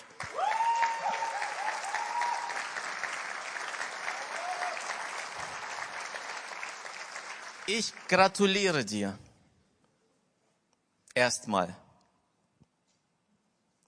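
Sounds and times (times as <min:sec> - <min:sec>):
audience applause: 0:00.0 - 0:08.7
speech: 0:07.7 - 0:09.2, 0:11.2 - 0:11.8.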